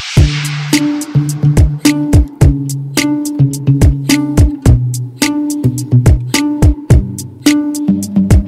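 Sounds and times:
Top40 pop music: 0.2s - 8.4s.

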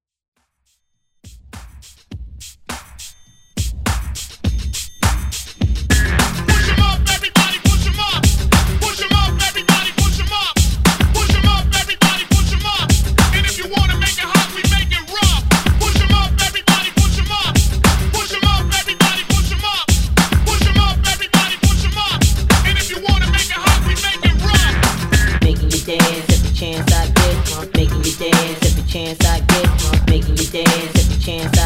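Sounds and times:
party breakbeat music rework: 0.4s - 31.6s.

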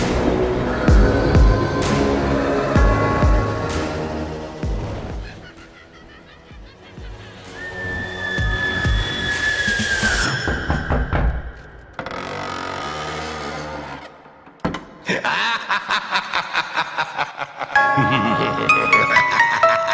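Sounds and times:
Halloween music: 0.0s - 11.1s, 17.7s - 19.9s
laughter: 4.8s - 8.0s, 15.0s - 19.9s.

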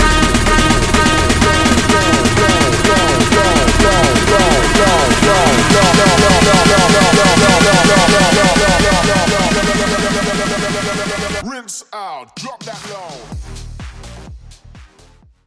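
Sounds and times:
DJ transition effect: 0.0s - 11.5s.

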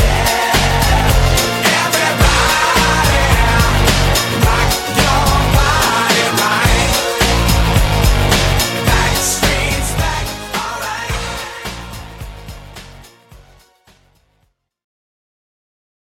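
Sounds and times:
transition sound: 0.0s - 10.7s.

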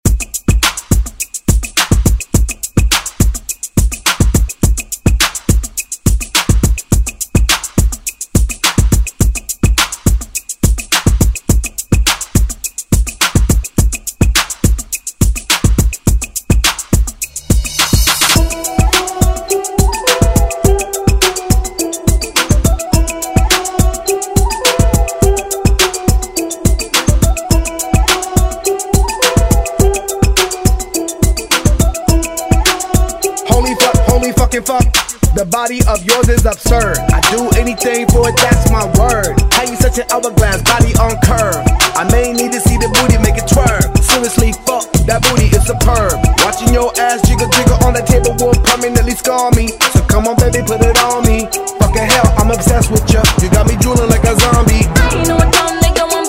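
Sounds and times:
Top40 pop music: 0.0s - 56.2s.

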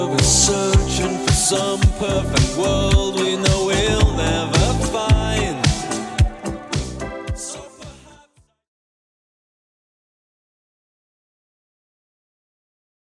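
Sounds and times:
80s-style beat at 110 bpm: 0.0s - 8.3s.

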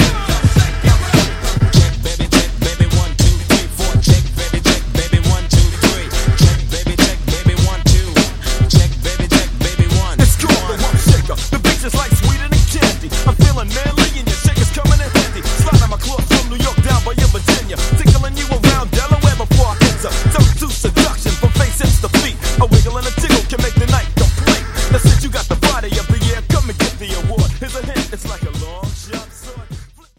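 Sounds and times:
90s hip hop rap music: 0.0s - 30.1s.

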